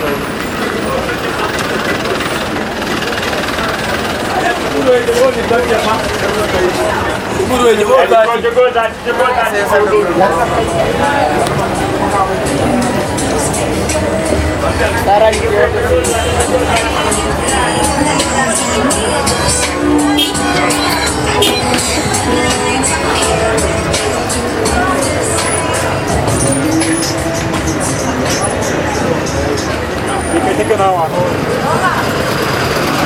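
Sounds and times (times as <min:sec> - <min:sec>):
crowd chatter at a bus station: 0:00.0 - 0:33.0
low rumble of vehicles at a bus station: 0:00.0 - 0:33.0.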